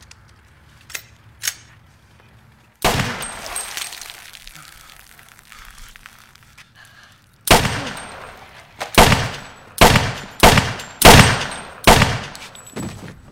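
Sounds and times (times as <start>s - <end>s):
pistol gunshots: 2.8s - 3.5s, 7.5s - 12.5s.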